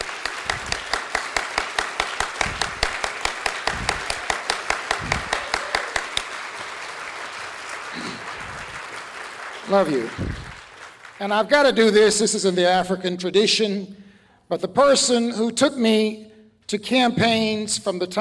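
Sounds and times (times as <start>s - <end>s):
audience applause: 0.0s - 11.2s
speech: 9.7s - 10.4s, 11.2s - 18.1s.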